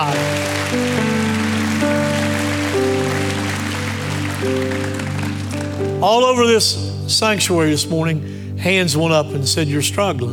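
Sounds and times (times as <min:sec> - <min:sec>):
audience hand clapping: 0:00.0 - 0:06.2
speech: 0:06.0 - 0:10.3.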